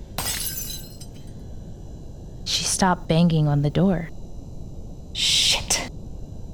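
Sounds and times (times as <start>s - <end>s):
falling glass pieces tinkling: 0.2s - 1.2s
glass bottle crashing and shattering: 0.2s - 1.2s
speech: 2.5s - 4.2s.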